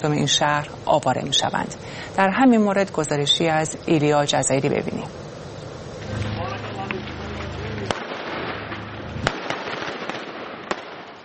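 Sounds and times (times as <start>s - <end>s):
speech: 0.0s - 5.3s
low droning hum: 4.7s - 9.4s
rushing background: 5.8s - 9.5s
exchange of gunfire: 6.1s - 11.2s.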